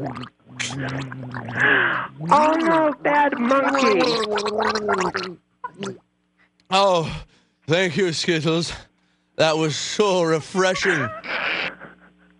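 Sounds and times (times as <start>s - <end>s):
RC Cola poured down throat, gargling: 0.0s - 6.0s
speech: 0.0s - 6.0s, 6.7s - 11.7s.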